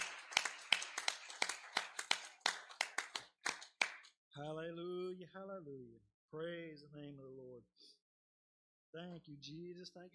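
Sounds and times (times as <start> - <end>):
audience hand clapping: 0.0 - 4.2
speech: 4.4 - 7.8, 8.9 - 10.1.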